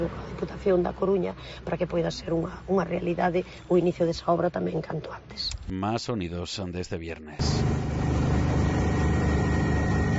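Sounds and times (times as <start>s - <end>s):
speech: 0.0s - 7.8s
helicopter engine roar: 7.4s - 10.1s.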